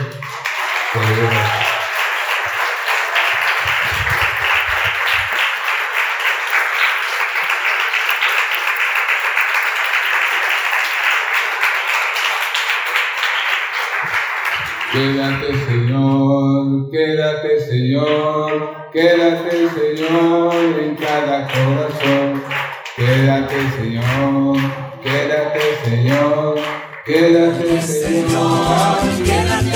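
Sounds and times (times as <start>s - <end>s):
audience applause: 0.0s - 15.9s, 19.4s - 28.0s
music or singing: 14.8s - 29.7s
speech: 23.2s - 29.7s.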